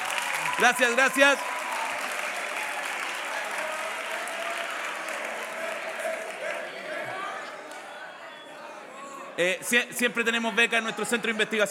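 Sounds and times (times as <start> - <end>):
audience applause: 0.0 - 7.9
speech: 0.6 - 1.5, 9.4 - 11.6.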